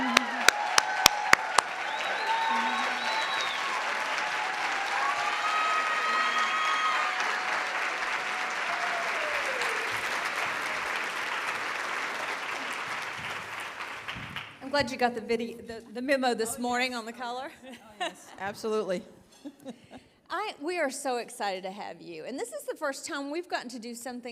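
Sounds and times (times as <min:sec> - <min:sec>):
whistles and cheers: 0:00.0 - 0:11.6
audience applause welcoming Virginia Lieutenant Governor Winsome Earle-Sears: 0:00.0 - 0:14.6
speech: 0:14.8 - 0:19.8, 0:20.4 - 0:24.3.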